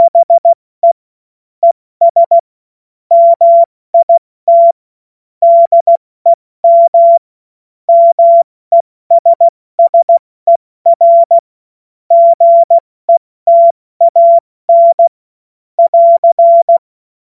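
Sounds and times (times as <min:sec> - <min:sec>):
CW Morse code beeps: 0:00.0 - 0:01.0, 0:02.0 - 0:02.4, 0:03.1 - 0:04.8, 0:05.4 - 0:07.2, 0:07.9 - 0:11.4, 0:12.1 - 0:15.1, 0:15.8 - 0:16.8.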